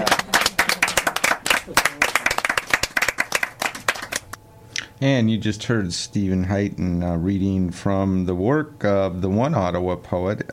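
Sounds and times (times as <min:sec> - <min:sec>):
audience applauding: 0:00.0 - 0:04.4
speech: 0:01.7 - 0:02.0, 0:05.0 - 0:10.5.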